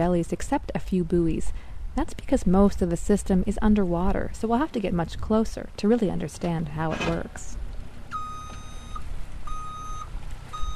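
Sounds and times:
speech: 0:00.0 - 0:07.6
vehicle engine rumble: 0:02.1 - 0:10.7
vehicle reversing alarm beeps: 0:08.1 - 0:10.7.

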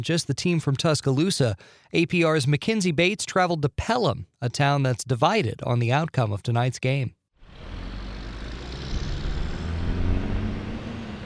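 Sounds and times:
speech: 0:00.0 - 0:07.2
busy road traffic passing: 0:07.4 - 0:11.2.

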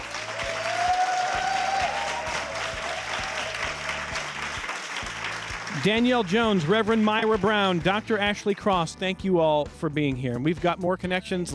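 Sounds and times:
live audience clapping at the RMAPI Summit at MCC in Rochester: 0:00.0 - 0:08.8
speech: 0:05.8 - 0:11.5.

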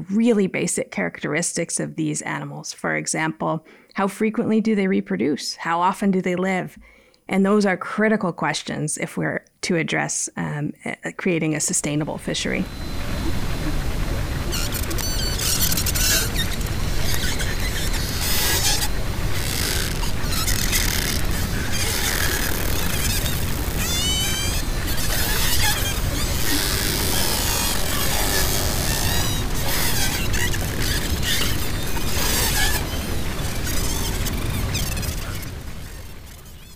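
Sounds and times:
speech: 0:00.0 - 0:13.0
white-sided dolphins clicking and buzzing underwater: 0:11.8 - 0:36.7.

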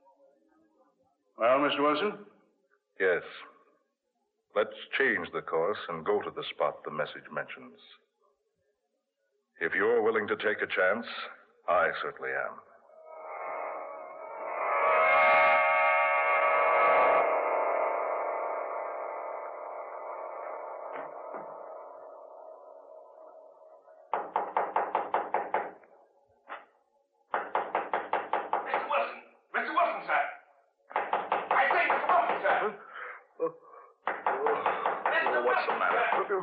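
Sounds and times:
speech: 0:01.4 - 0:02.3, 0:03.0 - 0:03.5, 0:04.5 - 0:08.0, 0:09.6 - 0:12.7
sustained musical tone: 0:12.8 - 0:24.2
knocking on a door: 0:24.1 - 0:25.8, 0:27.3 - 0:28.9, 0:30.9 - 0:32.7, 0:34.0 - 0:36.3.

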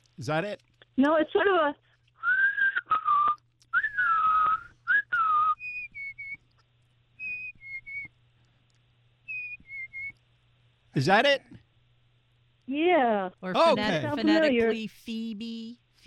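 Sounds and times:
speech: 0:00.2 - 0:01.8, 0:11.0 - 0:11.6, 0:12.7 - 0:16.0
person whistling an imitation of a black-capped chickadee call: 0:02.2 - 0:06.4, 0:07.2 - 0:08.1, 0:09.3 - 0:10.1.

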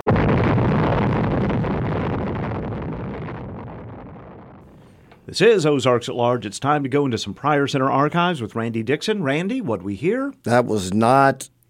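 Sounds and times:
atomic bomb explosion at Bikini test: 0:00.0 - 0:05.1
speech: 0:05.3 - 0:11.6.

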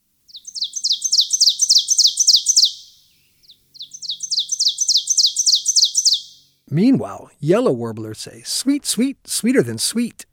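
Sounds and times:
ovenbird song: 0:00.0 - 0:06.7
speech: 0:06.7 - 0:10.2.

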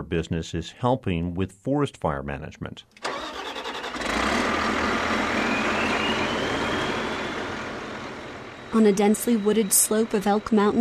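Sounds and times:
speech: 0:00.0 - 0:03.6, 0:08.7 - 0:10.8
heavy logging machine clear-cutting trees: 0:03.0 - 0:10.8
thin mechanical whine: 0:04.8 - 0:10.8.

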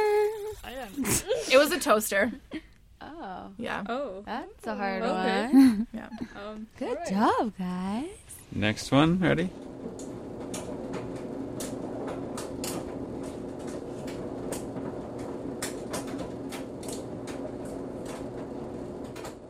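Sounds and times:
speech: 0:01.1 - 0:10.6
clothes dryer: 0:04.8 - 0:19.4.

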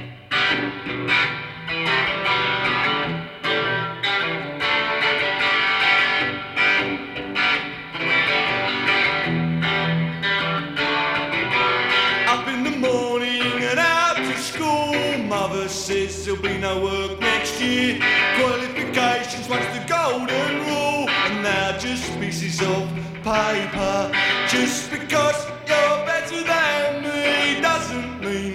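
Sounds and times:
distorted electric guitar strumming: 0:00.0 - 0:28.5
political post-punk song recording: 0:00.0 - 0:28.5.

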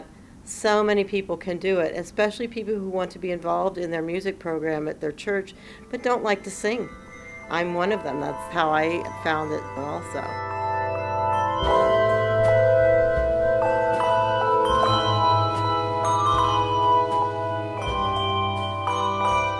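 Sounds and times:
speech: 0:00.6 - 0:10.6
handbell choir playing bells and chimes: 0:05.6 - 0:19.5.

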